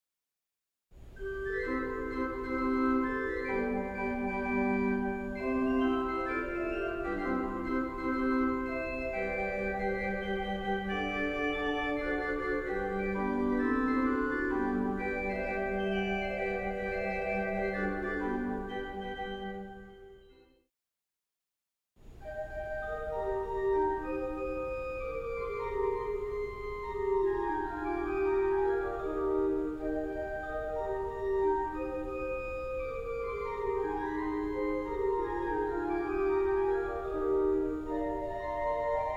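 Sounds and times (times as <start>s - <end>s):
flute clock playing: 1.2s - 20.4s, 22.3s - 39.1s.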